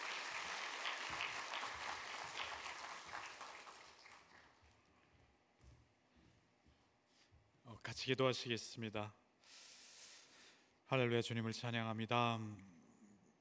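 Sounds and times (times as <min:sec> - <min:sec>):
audience applauding in welcome: 0:00.0 - 0:04.8
speech: 0:07.9 - 0:09.2, 0:10.9 - 0:12.8.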